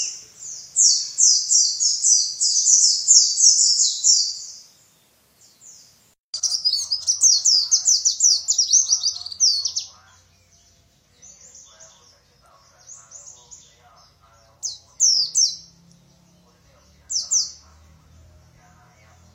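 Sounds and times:
white-eye twittering song with descending chirps: 0.0 - 4.9, 5.5 - 19.3.

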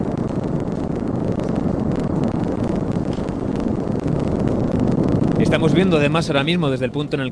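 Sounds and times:
volcanic eruption rumbling on La Palma: 0.0 - 7.3
speech: 5.5 - 7.3.

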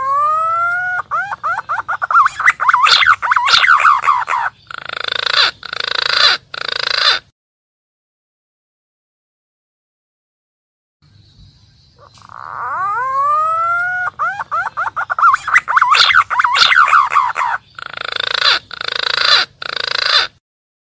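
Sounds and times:
green pigeon calling, used as a lure for wild birds: 0.0 - 7.3, 11.9 - 20.4.

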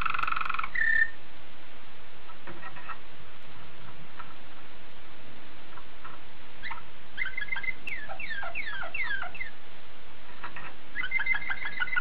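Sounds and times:
Oriental magpie-robin song: 0.0 - 1.2, 5.8 - 9.6, 10.3 - 11.9.

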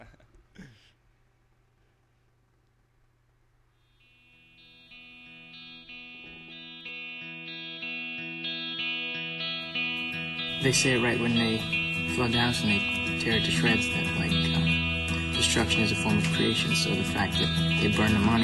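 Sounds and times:
rock song played from an album: 5.5 - 18.4
speech: 10.6 - 14.4, 15.4 - 18.4.

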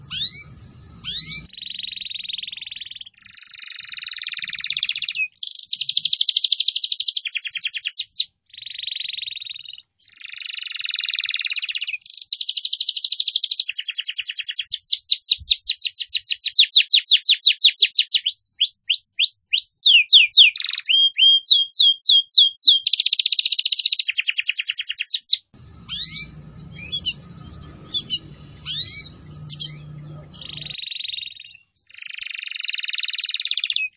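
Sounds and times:
low hum: 0.0 - 1.5, 25.6 - 30.8
Atlantic canary singing: 0.0 - 33.9.

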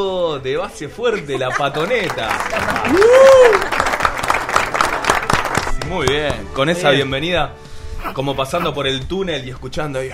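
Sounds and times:
speech: 0.0 - 3.9, 5.9 - 10.1
laughter: 1.0 - 4.1, 8.0 - 8.8
applause sound effect: 1.7 - 6.5.

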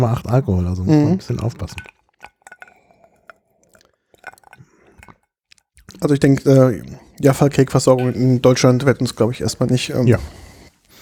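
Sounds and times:
speech: 0.0 - 2.0, 6.0 - 10.5
sipping neat Dubonnet with wet mouth and swallowing noises: 1.2 - 9.1
light glass clinks: 1.6 - 3.4, 4.2 - 5.4, 7.8 - 8.4.

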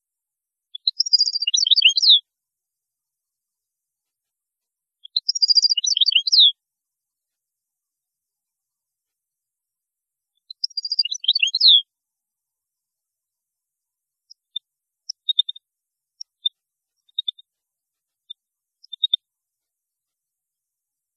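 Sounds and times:
European goldfinch singing tinkling chirps: 0.8 - 2.2, 5.1 - 6.5, 10.4 - 11.8, 14.3 - 15.6, 16.2 - 17.4, 18.8 - 19.2.

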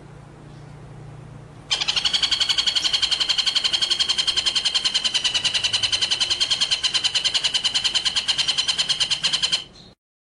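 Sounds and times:
White-rumped shama rolling trill: 1.7 - 9.7.

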